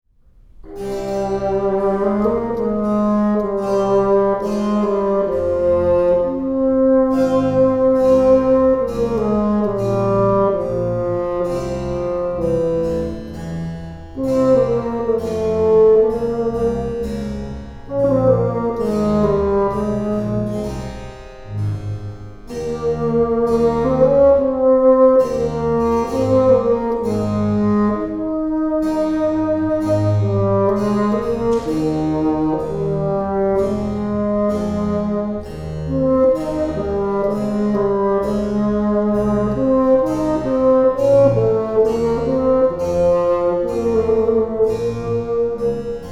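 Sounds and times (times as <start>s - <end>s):
bassoon sonata andante in F minor: 0.4s - 46.1s.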